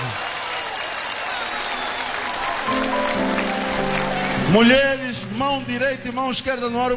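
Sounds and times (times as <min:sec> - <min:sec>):
audience applause: 0:00.0 - 0:05.4
speech: 0:04.5 - 0:06.9.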